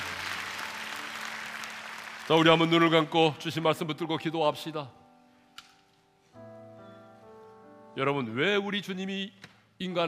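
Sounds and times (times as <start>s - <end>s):
audience applause: 0.0s - 3.1s
speech: 2.3s - 5.0s, 8.0s - 10.0s.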